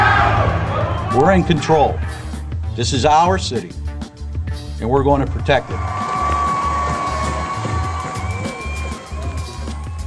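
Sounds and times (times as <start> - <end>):
crowd of demonstrators cheering and shouting in St. Louis, Missouri: 0.0 - 1.7, 5.6 - 10.0
speech: 1.2 - 2.2, 2.8 - 3.8, 4.8 - 6.0
low rhythmic thumping: 3.7 - 10.0.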